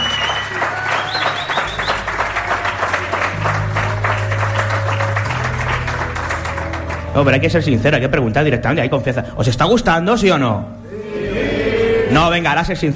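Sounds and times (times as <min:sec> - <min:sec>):
audience applauding: 0:00.0 - 0:07.3
speech: 0:07.2 - 0:10.8, 0:12.1 - 0:12.9.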